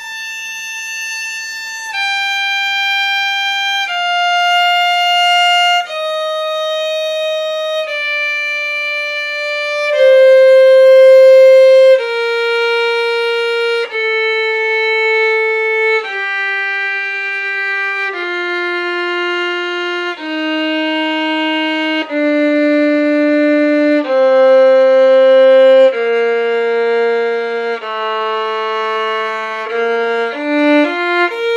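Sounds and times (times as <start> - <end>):
B major scale arpeggios: 0.9 - 31.5.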